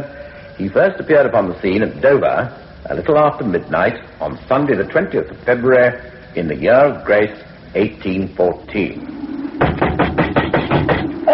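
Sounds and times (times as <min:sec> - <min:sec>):
speech: 0:00.0 - 0:09.2
knocking on a door: 0:09.6 - 0:11.1.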